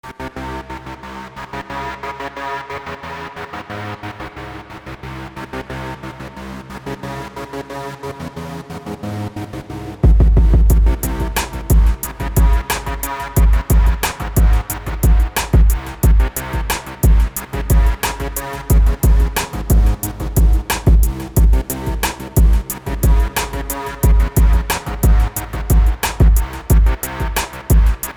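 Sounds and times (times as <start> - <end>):
gangsta hip-hop music: 10.4 - 28.1.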